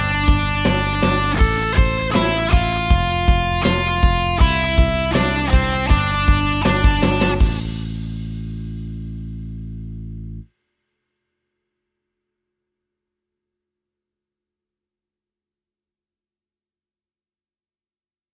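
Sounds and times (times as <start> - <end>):
rhythm guitar backing track: 0.0 - 10.4.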